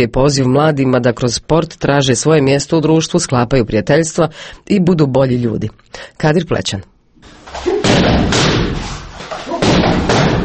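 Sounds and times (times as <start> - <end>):
speech: 0.0 - 6.9
taekwondo kicks striking with dull thumps: 7.4 - 10.4.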